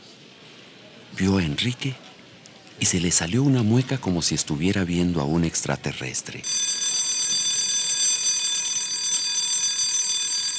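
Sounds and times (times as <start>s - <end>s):
speech: 1.2s - 2.1s, 2.8s - 6.7s
school bell ringing for recess: 6.4s - 10.5s.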